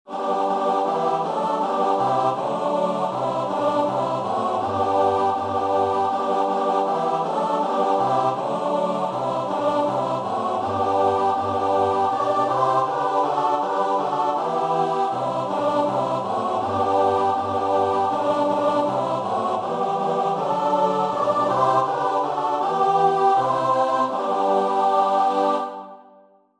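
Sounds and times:
choir singing: 0.1s - 26.3s.

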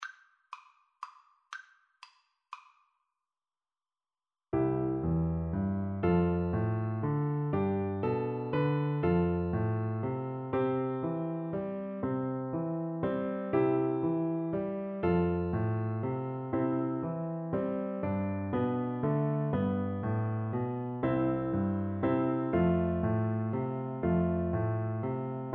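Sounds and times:
piano duet: 4.6s - 25.5s.

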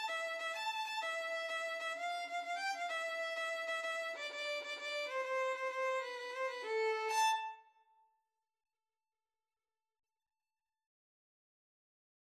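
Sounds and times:
violin playing tarantella: 0.0s - 7.7s.

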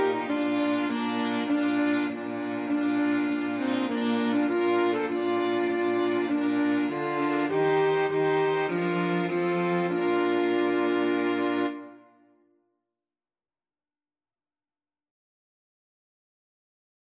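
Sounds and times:
flexible mixed ensemble of four players: 0.0s - 12.0s.

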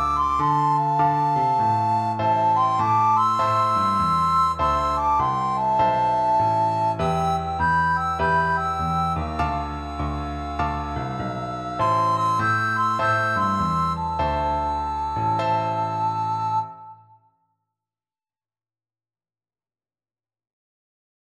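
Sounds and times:
cool blues recorder duet: 0.0s - 16.9s.

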